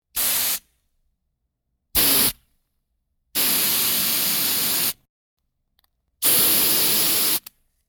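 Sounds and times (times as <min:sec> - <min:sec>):
spray: 0:00.2 - 0:00.6, 0:02.0 - 0:02.4, 0:03.4 - 0:05.0, 0:06.2 - 0:07.5.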